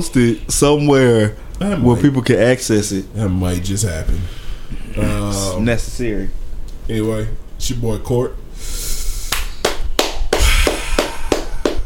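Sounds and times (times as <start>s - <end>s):
speech: 0.0s - 4.4s, 5.0s - 8.9s
hand clapping: 9.2s - 11.8s.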